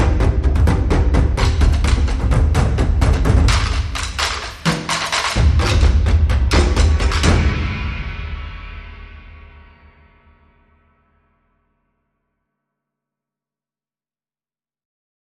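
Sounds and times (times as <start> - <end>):
drums: 0.0 - 10.6.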